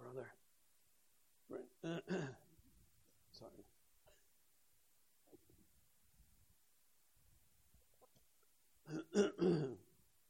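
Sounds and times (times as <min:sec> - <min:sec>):
speech: 0:01.8 - 0:02.4
throat clearing: 0:01.8 - 0:02.4, 0:08.9 - 0:09.8.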